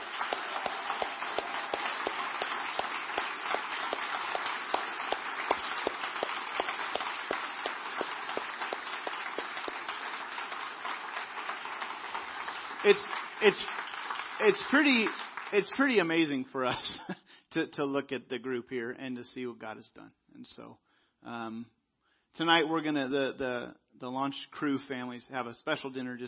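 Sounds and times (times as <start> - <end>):
church congregation applauding to honor a group: 0.0 - 16.5
speech: 12.9 - 13.8, 14.4 - 26.2.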